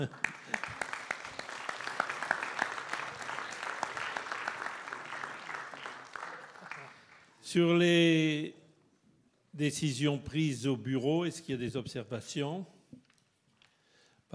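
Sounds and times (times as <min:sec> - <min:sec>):
speech: 0:00.0 - 0:00.3, 0:07.5 - 0:08.6, 0:09.6 - 0:12.8
audience applause: 0:00.0 - 0:07.4.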